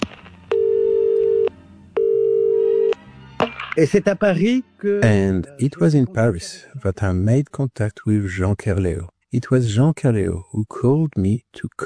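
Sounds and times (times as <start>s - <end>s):
telephone ringback tone: 0.5s - 3.0s
speech: 3.8s - 11.8s.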